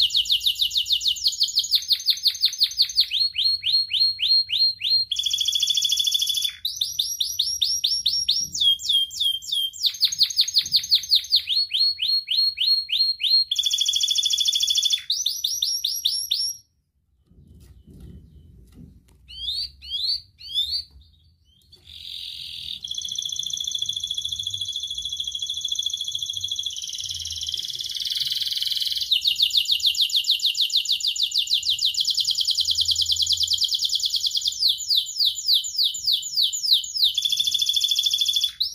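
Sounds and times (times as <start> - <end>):
Atlantic canary song: 0.0 - 38.7.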